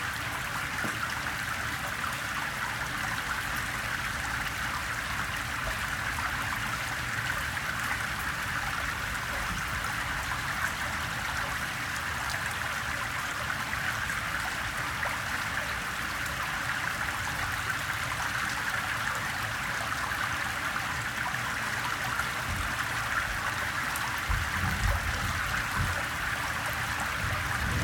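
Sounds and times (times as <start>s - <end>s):
gentle rain recorded through an air duct: 0.0s - 27.8s
water running off a pebble street: 0.0s - 27.8s
background thunder: 27.3s - 27.8s.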